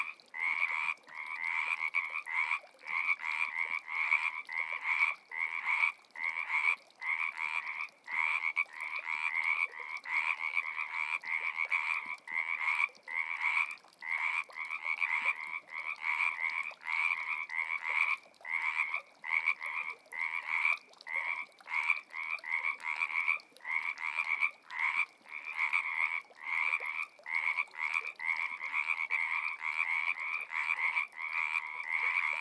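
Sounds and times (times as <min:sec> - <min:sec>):
frogs: 0:00.0 - 0:32.3.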